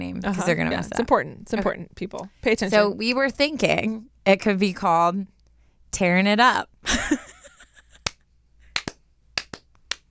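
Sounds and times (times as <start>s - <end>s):
speech: 0.2s - 7.2s
slow clap by two people: 7.9s - 10.1s.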